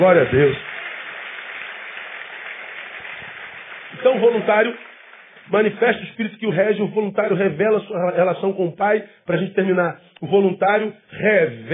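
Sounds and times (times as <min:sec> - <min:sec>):
speech: 0:00.0 - 0:00.7, 0:04.2 - 0:04.9, 0:05.5 - 0:11.7
audience applause: 0:00.0 - 0:05.9.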